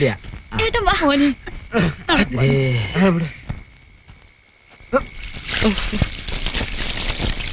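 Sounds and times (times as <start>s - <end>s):
people talking: 0.0s - 3.5s, 4.9s - 6.1s
water from buckets poured over someone's head: 4.9s - 7.5s.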